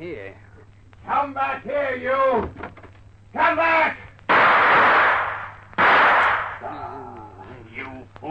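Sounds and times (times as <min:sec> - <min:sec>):
speech: 0:00.0 - 0:02.6
gunshots in a radio drama: 0:04.3 - 0:06.7.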